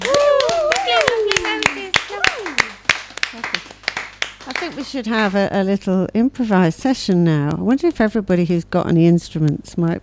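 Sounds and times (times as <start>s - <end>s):
audience applause: 0.0s - 5.4s
speech: 4.7s - 10.0s.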